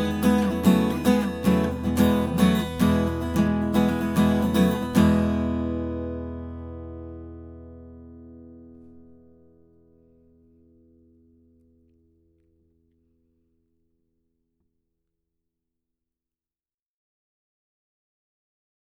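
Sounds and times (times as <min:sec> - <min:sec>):
guitar strumming: 0:00.0 - 0:10.2.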